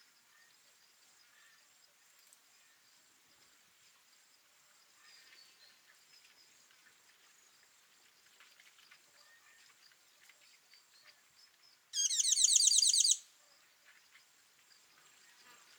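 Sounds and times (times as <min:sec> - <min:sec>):
Tinkling Cisticola calling: 0:12.0 - 0:13.2.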